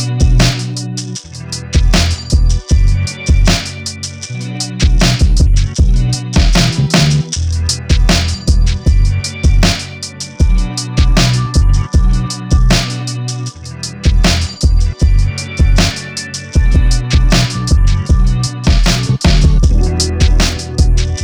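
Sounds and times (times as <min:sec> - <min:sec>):
MPC 1200 beat at 156 bpm: 0:00.0 - 0:21.2.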